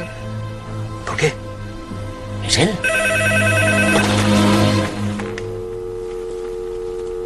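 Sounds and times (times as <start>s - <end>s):
quieter lower hum: 0.0s - 7.2s
speech: 1.2s - 1.5s, 2.4s - 3.6s
telephone ringing with electronic trill: 2.8s - 4.9s.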